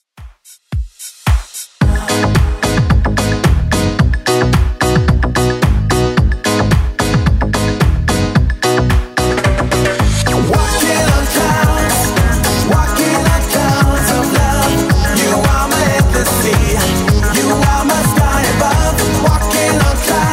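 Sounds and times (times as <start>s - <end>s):
1990s style music at 110 bpm: 0.0s - 20.3s.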